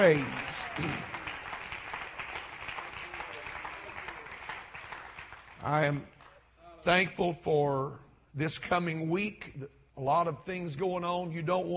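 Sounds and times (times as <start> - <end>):
speech: 0.0 - 1.1, 5.6 - 6.1, 6.8 - 11.7
audience clapping: 0.0 - 6.4.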